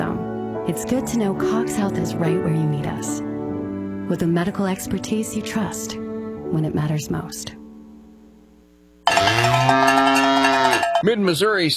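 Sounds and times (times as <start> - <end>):
speech: 0.7 - 3.3, 4.1 - 7.6, 11.0 - 11.7
cattle mooing at Mid-Missouri Stockyards near Lebanon: 9.1 - 11.0.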